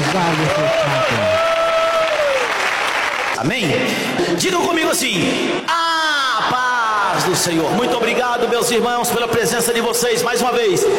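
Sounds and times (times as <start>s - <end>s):
audience applauding: 0.0s - 3.7s
speech: 0.2s - 1.5s, 3.4s - 5.8s, 6.4s - 10.9s.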